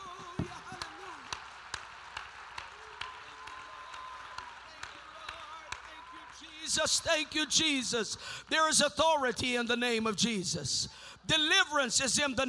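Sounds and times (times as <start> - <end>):
audience clapping hands in steady rhythm: 0.0 - 8.6
speech: 6.8 - 12.4.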